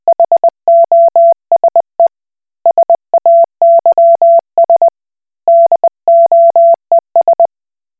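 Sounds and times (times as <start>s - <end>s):
Koch Morse code beeps: 0.1s - 1.8s, 2.7s - 4.9s, 5.5s - 7.5s.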